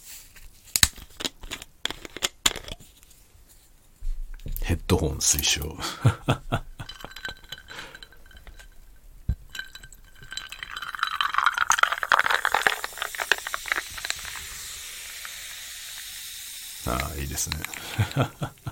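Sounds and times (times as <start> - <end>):
speech: 4.7 - 6.7, 17.4 - 18.6
laughter: 5.8 - 7.2, 16.9 - 18.6
small clinks of a glass: 6.5 - 12.2
tonic water poured into a glass: 6.8 - 18.3
fizzing tonic water bubbles: 6.8 - 18.6.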